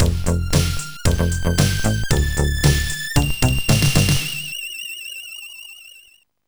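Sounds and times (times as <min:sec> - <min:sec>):
beat: 0:00.0 - 0:04.5.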